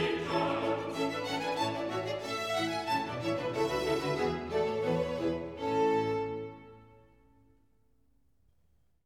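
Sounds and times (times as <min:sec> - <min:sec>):
chorus singing: 0:00.0 - 0:06.1.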